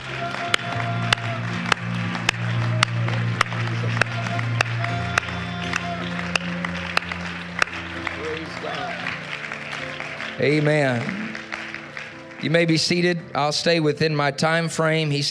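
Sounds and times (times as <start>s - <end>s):
low crowd murmur: 0.0s - 10.2s
audience clapping in unison in worship: 0.0s - 13.8s
sustained organ-like chords: 0.0s - 15.3s
speech: 10.4s - 11.2s, 12.4s - 15.3s.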